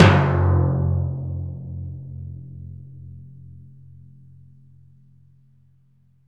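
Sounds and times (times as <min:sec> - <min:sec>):
dry timpani: 0:00.0 - 0:02.4.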